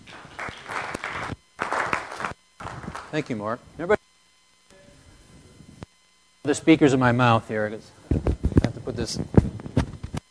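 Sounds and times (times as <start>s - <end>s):
audience applause welcoming a speaker at a library talk: 0.1s - 3.2s
speech: 3.1s - 4.0s, 6.5s - 8.0s, 9.0s - 9.5s.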